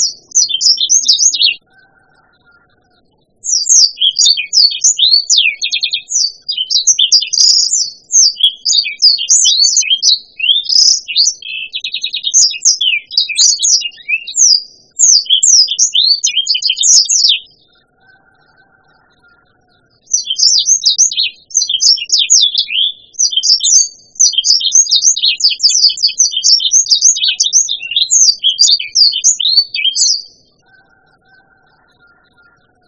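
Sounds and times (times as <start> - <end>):
blacksang bird chirping: 0.0 - 32.8.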